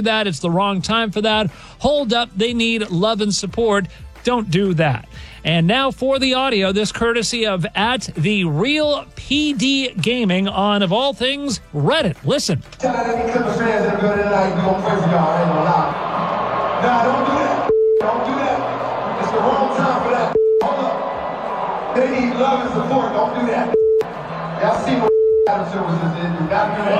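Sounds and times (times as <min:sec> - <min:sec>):
speech: 0:00.0 - 0:16.0, 0:16.8 - 0:17.6, 0:24.6 - 0:26.9
arena crowd booing: 0:13.8 - 0:26.9.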